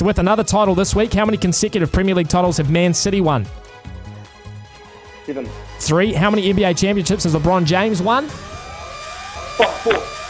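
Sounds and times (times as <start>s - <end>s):
speech: 0.0s - 3.7s, 5.3s - 8.5s, 9.6s - 10.1s
quiz time-up buzzer: 9.2s - 10.2s.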